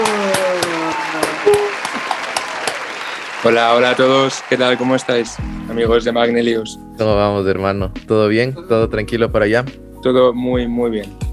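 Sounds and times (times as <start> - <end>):
applause: 0.0 - 5.8
speech: 3.4 - 11.3.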